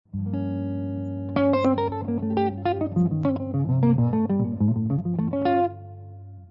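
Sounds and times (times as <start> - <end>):
jazz guitar lines in Locrian natural 2: 0.1 - 6.4.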